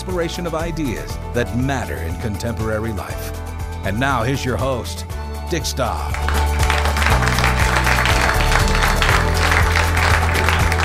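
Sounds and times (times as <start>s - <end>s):
speech: 0.1s - 6.6s
live audience applause in the Walker Ames Room of Kane Hall University of Washington: 6.1s - 10.8s.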